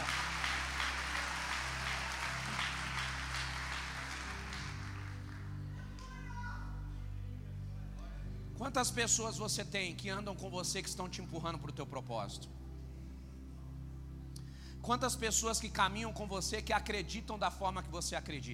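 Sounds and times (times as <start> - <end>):
audience clapping: 0.0 - 6.2
sustained low musical tones humming: 0.0 - 18.5
speech: 8.6 - 12.6, 14.8 - 18.5.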